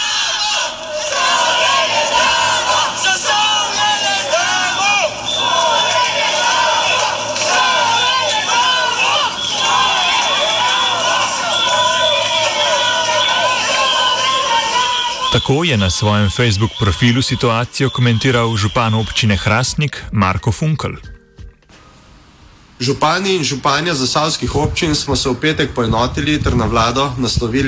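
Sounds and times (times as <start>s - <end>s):
protest crowd shouting and chanting in Trbovlje: 0.0s - 19.5s
speech: 15.5s - 21.1s, 22.8s - 27.6s.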